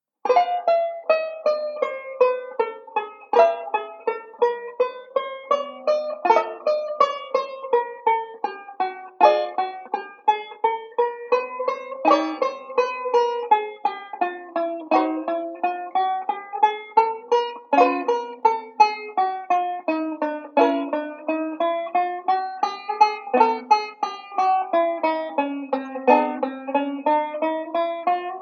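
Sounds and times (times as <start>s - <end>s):
banjo: 0.2s - 28.3s.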